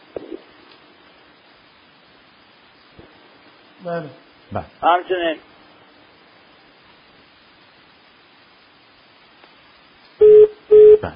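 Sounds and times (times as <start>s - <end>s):
faint telephone line noise: 0.0s - 11.1s
speech: 3.8s - 5.5s
repeating telephone tone on a call cut off from Bandar Abbas: 10.2s - 11.1s.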